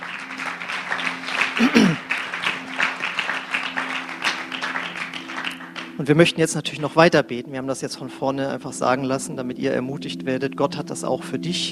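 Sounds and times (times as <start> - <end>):
audience applause: 0.0 - 6.0
person's voice: 1.6 - 2.0, 6.0 - 11.7
speech: 1.6 - 2.0, 6.0 - 11.7.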